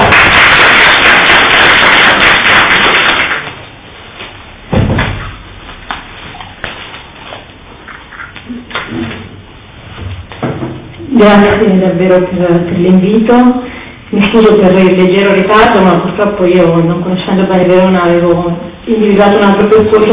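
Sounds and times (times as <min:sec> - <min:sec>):
audience applause: 0:00.0 - 0:03.6
speech: 0:11.2 - 0:20.1.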